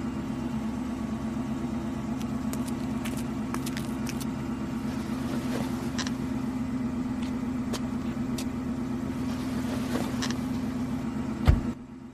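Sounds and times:
car engine rumbling: 0.0 - 12.1
heavy thump: 11.4 - 11.8.

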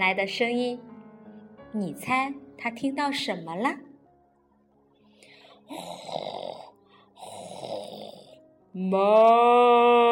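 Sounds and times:
speech: 0.0 - 0.9, 1.7 - 3.8, 5.7 - 7.4, 8.7 - 10.0
person imitating a cow snoring: 5.7 - 8.4.

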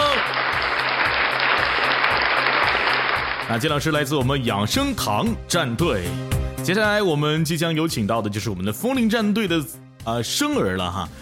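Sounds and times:
applause: 0.0 - 4.4
speech: 3.5 - 11.1.

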